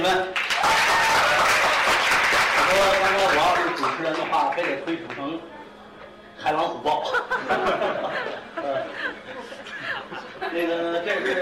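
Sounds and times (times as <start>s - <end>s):
speech: 0.0s - 0.4s, 6.4s - 9.2s, 10.1s - 11.4s
audience applause: 0.4s - 4.8s
laughter: 6.9s - 11.4s.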